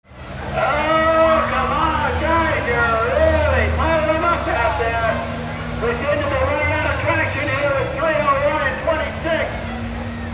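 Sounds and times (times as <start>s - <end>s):
cars: 0.0s - 10.3s.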